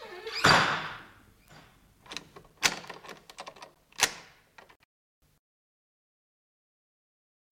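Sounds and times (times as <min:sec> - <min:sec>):
doors being closed: 0:00.0 - 0:04.8.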